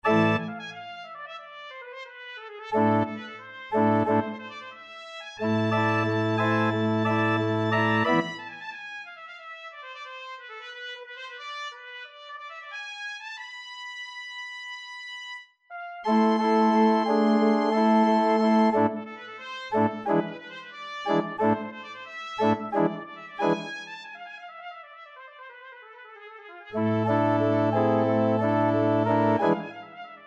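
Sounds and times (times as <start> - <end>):
organ: 0.0 - 0.5, 5.4 - 8.4, 16.1 - 19.0, 26.8 - 29.7
vivace trumpet solo: 0.0 - 14.0, 15.7 - 30.2.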